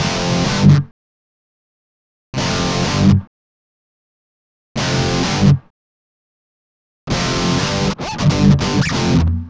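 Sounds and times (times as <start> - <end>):
guitar licks: 0.0 - 0.9, 2.4 - 3.3, 4.8 - 5.7, 7.1 - 9.4.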